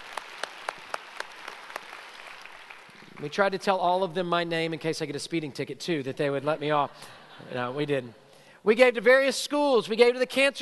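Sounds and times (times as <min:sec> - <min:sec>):
audience applause: 0:00.0 - 0:03.6
speech: 0:03.2 - 0:10.5.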